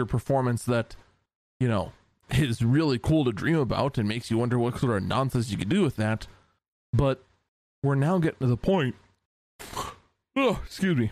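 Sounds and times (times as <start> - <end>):
speech: 0.0 - 1.0, 1.6 - 9.0, 10.4 - 11.1
person yawning: 9.6 - 10.6.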